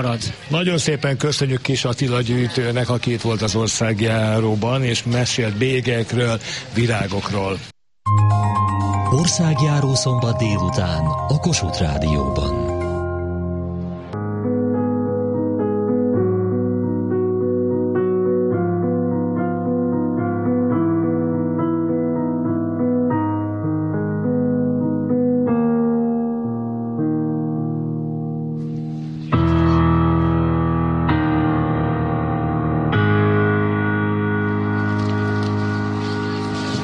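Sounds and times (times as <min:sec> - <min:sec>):
speech: 0:00.0 - 0:07.7, 0:09.1 - 0:12.7
young pianist's instrumental composition with sustained rich chords: 0:08.0 - 0:36.8.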